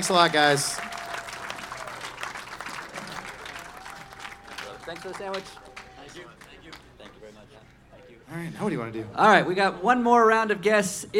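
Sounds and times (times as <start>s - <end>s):
speech: 0.0s - 0.9s, 4.9s - 7.7s, 8.3s - 11.1s
live audience applause: 0.0s - 6.9s.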